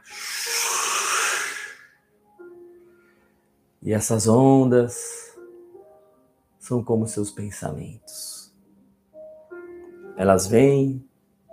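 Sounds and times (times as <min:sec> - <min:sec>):
deep exhale during breathing exercise: 0:00.0 - 0:02.0
speech: 0:03.8 - 0:05.2, 0:06.7 - 0:08.4, 0:10.2 - 0:11.1.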